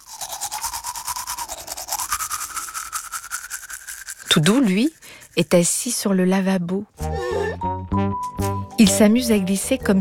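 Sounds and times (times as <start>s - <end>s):
toothbrush brushing teeth before bed: 0.0s - 6.2s, 8.2s - 8.8s
speech: 4.4s - 7.2s, 8.8s - 9.9s.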